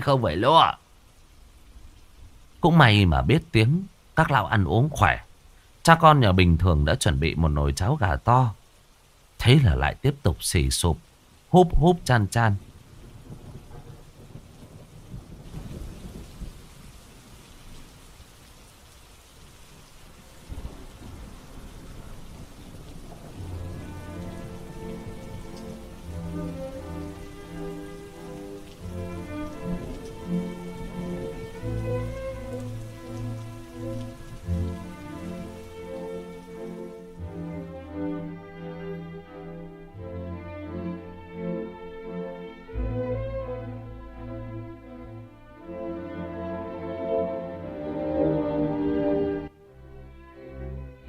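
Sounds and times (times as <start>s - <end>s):
speech: 0.0s - 0.8s, 2.6s - 5.2s, 5.8s - 8.6s, 9.4s - 12.7s
heavy rain: 0.0s - 51.0s
thunder rumbling: 12.6s - 17.9s, 19.7s - 37.4s
slow tonal music bed: 23.4s - 51.0s.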